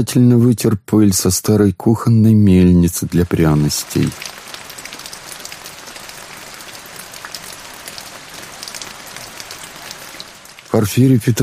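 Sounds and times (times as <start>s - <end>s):
speech: 0.0s - 4.6s, 10.8s - 11.4s
heavy rain pouring: 2.6s - 11.4s.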